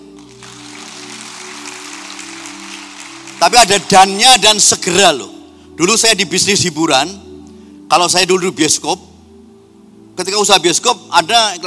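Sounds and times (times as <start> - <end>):
audience clapping: 0.0 - 4.2
speech: 3.4 - 7.3, 7.9 - 9.1, 10.2 - 11.6.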